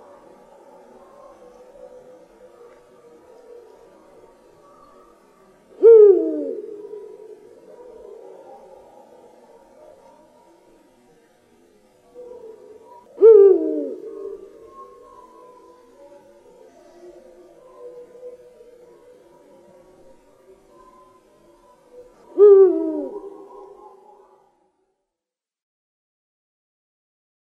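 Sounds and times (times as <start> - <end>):
eagle owl calling: 5.7 - 7.5, 12.2 - 16.2, 22.0 - 24.4.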